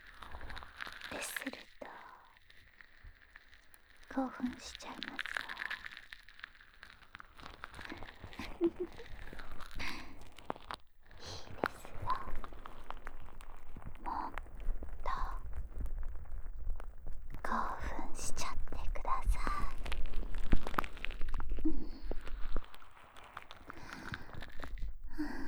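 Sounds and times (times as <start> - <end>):
licking deep in the ear: 0.0 - 25.4
person whispering by the ear: 1.0 - 2.2, 4.1 - 5.9, 11.2 - 12.8, 14.0 - 15.6, 17.4 - 20.4, 21.6 - 22.4
wet ear cleaning with an ear pick: 2.7 - 25.4.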